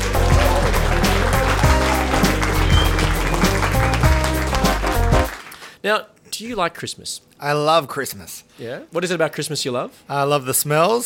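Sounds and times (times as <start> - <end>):
rhythmic music track: 0.0 - 5.4
studio audience applauding a guest author: 0.0 - 5.8
speech: 5.8 - 11.0.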